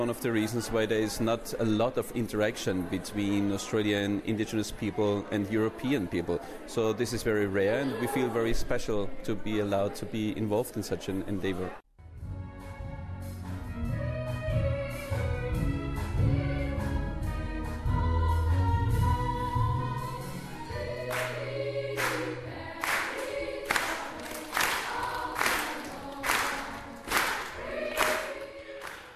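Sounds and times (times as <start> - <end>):
speech: 0.0 - 11.8
choir singing sustained harmonies: 14.0 - 29.1
audience rhythmic clapping during a standing ovation: 21.0 - 29.1.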